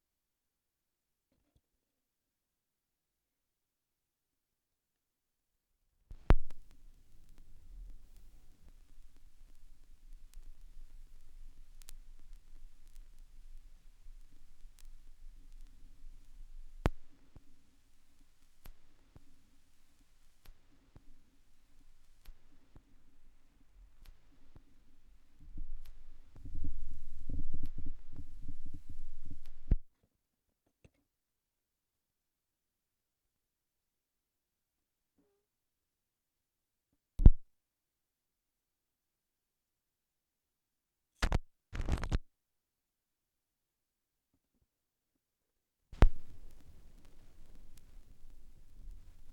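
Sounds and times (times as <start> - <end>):
vinyl record noise: 6.1 - 29.8, 41.2 - 42.2, 46.0 - 49.3.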